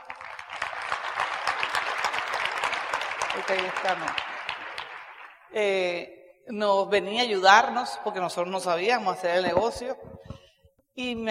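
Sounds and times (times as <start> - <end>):
loud audience applause: 0.0 - 5.6
speech: 3.4 - 4.3, 5.5 - 10.1, 11.0 - 11.2.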